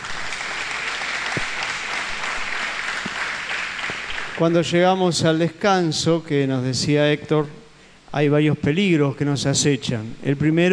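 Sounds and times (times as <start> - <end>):
audience applause: 0.0 - 4.4
speech: 4.4 - 10.7.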